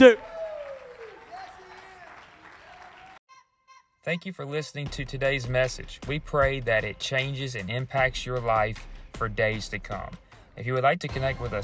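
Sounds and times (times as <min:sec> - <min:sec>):
speech: 0:00.0 - 0:00.2, 0:04.0 - 0:11.6
audience clapping hands: 0:00.0 - 0:03.2.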